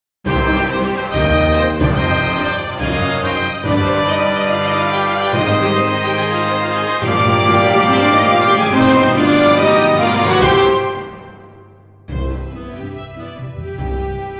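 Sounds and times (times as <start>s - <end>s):
victory theme music: 0.3s - 14.3s.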